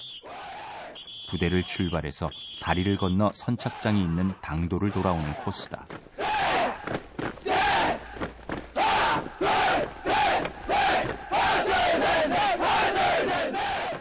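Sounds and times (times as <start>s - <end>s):
marines shouting battle cries while running: 0.2s - 1.0s, 3.4s - 13.9s
speech: 1.3s - 6.2s.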